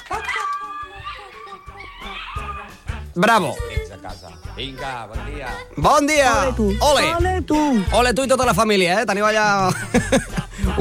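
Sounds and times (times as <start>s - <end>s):
old golden retriever moaning: 1.0s - 2.8s
speech: 3.2s - 3.7s, 4.6s - 10.7s
laughter: 9.4s - 10.7s.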